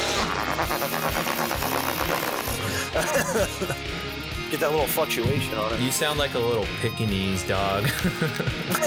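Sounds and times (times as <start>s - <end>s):
fart noise made by squeezing air through the hands: 0.2s - 2.7s
laughter: 0.6s - 4.3s, 7.6s - 8.8s
speech: 3.0s - 8.8s.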